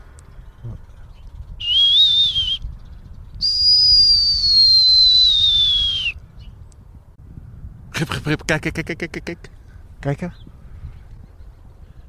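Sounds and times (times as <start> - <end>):
Common Starling whistling song: 0.5 - 6.6
speech: 8.0 - 10.5.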